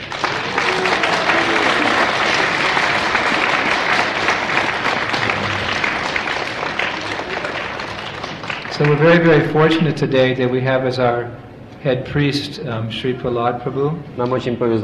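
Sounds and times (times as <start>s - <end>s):
audience applause: 0.0s - 9.7s
speech: 8.8s - 14.8s.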